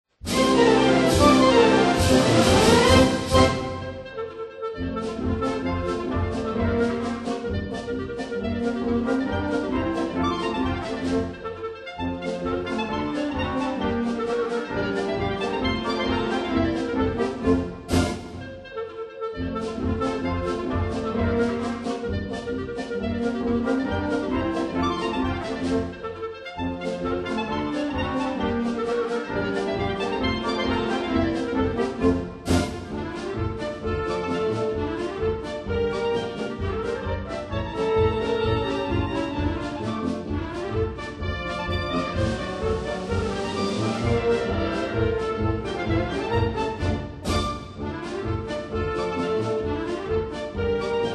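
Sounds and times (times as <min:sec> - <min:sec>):
clarinet: 0:00.3 - 0:51.1.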